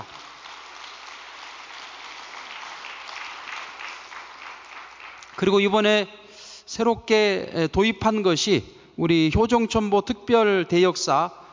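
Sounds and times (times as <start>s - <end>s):
audience applause: 0.0s - 5.5s
speech: 5.4s - 11.4s.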